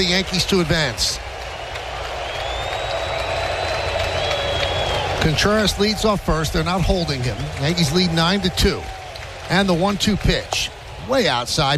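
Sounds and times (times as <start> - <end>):
speech: 0.0 - 1.2, 5.2 - 11.7
baseball stadium crowd roaring: 0.0 - 11.7
high whistles: 1.4 - 5.7.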